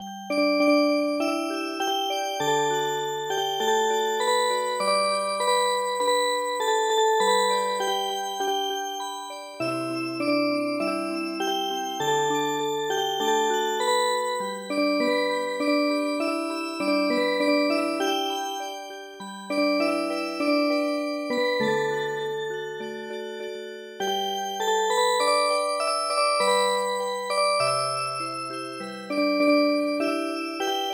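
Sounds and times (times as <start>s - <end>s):
MIDI music box melody: 0.0s - 30.9s.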